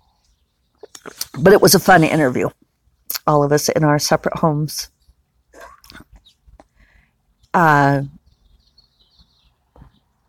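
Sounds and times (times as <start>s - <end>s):
speech: 1.0s - 2.6s, 3.2s - 5.0s, 7.6s - 8.2s
neighbor's morning coughing: 5.6s - 6.0s.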